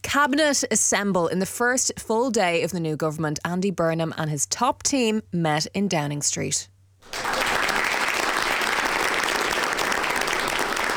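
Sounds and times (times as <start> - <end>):
speech: 0.1 - 7.2
applause for the new Prime Minister: 7.0 - 10.9.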